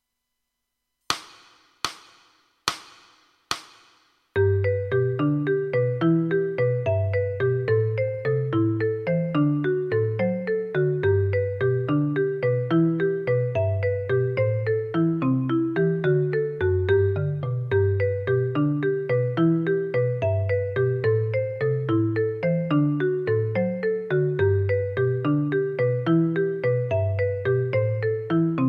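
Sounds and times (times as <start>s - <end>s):
four-mallet etude in G major: 4.4s - 28.6s.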